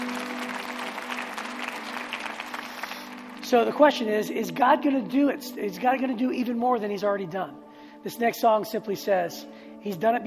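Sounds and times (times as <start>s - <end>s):
audience clapping: 0.0s - 3.8s
speech: 3.5s - 10.2s.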